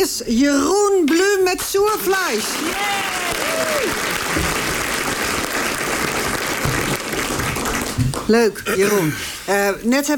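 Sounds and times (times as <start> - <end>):
speech: 0.0 - 4.6, 8.3 - 10.1
studio audience applause: 2.2 - 8.3.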